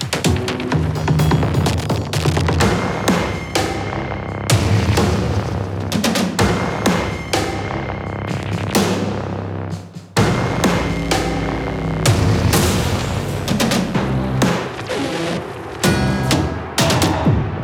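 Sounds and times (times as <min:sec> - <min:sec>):
industrial music loop at 127 BPM: 0:00.0 - 0:17.6.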